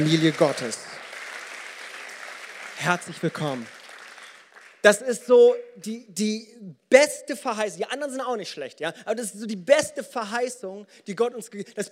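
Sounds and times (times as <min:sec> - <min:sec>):
speech: 0:00.0 - 0:00.9, 0:02.8 - 0:03.8, 0:04.8 - 0:11.9
audience applause: 0:00.0 - 0:04.8.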